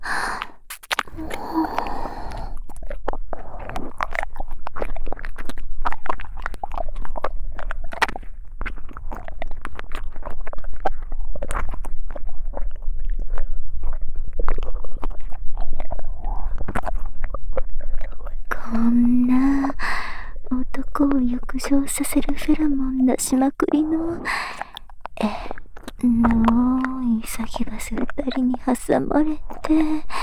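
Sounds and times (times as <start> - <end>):
breathy hum: 0.0 - 4.4, 15.8 - 30.2
ASMR ear licking mouth sounds: 0.0 - 30.2
speech: 23.3 - 23.6, 28.7 - 30.2.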